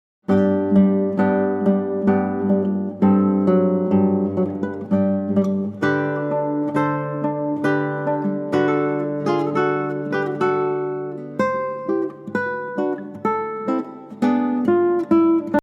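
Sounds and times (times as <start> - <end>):
minuet: 0.3 - 15.6.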